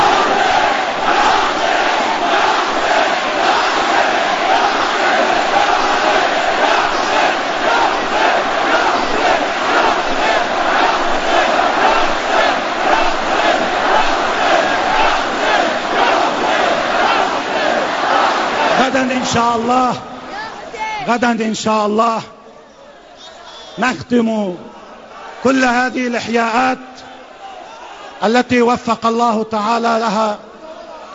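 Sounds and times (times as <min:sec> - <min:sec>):
crowd chanting: 0:00.0 - 0:21.1, 0:24.7 - 0:25.7
speech: 0:19.4 - 0:20.1, 0:21.0 - 0:22.4, 0:23.8 - 0:24.8, 0:25.4 - 0:27.1, 0:28.2 - 0:30.5.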